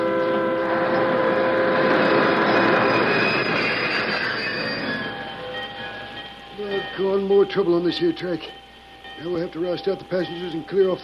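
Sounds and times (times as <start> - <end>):
train braking with squealing wheels: 0.0 - 7.2
speech: 7.5 - 8.6, 9.2 - 11.0.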